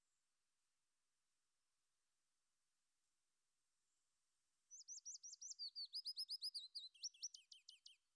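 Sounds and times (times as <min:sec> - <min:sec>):
mixed singer warbler singing willow warbler and chiffchaff song: 0:04.7 - 0:08.0.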